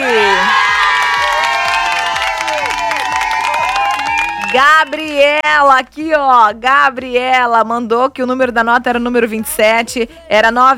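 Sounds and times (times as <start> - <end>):
applause and cheering: 0.0 - 5.3
speech: 4.6 - 10.7.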